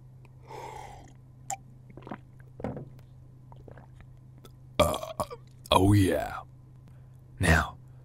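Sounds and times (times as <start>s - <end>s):
burp after drinking root beer: 4.8s - 5.4s
speech: 5.8s - 6.4s.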